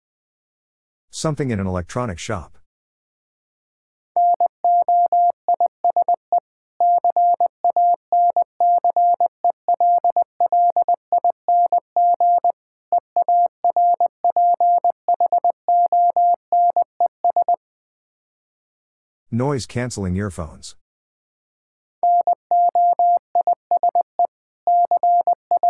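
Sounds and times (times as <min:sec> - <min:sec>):
speech: 0:01.2 - 0:02.6, 0:19.4 - 0:20.8
Morse code tones at 20 wpm: 0:04.2 - 0:06.2, 0:06.8 - 0:12.6, 0:13.2 - 0:17.6, 0:22.0 - 0:25.6.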